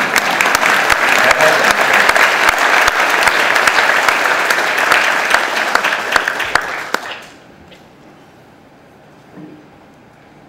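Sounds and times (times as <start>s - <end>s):
audience applause: 0.0s - 7.4s.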